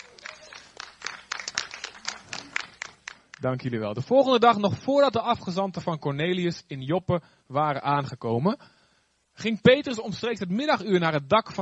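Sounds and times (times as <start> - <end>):
small audience clapping: 0.0 - 3.5
speech: 3.4 - 8.8, 9.4 - 11.6.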